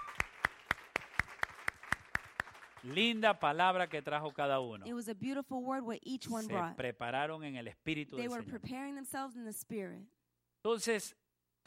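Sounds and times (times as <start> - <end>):
audience applause: 0.0 - 4.6
speech: 2.8 - 11.6.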